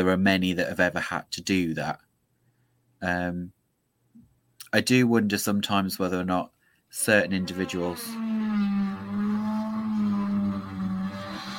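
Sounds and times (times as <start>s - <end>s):
speech: 0.0s - 2.1s, 3.0s - 3.6s, 4.7s - 8.8s
drilling through a wall: 7.2s - 11.5s.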